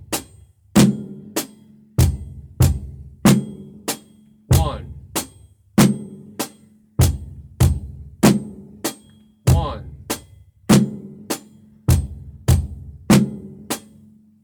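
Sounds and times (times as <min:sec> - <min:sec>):
drum beat: 0:00.0 - 0:01.2, 0:02.0 - 0:13.9.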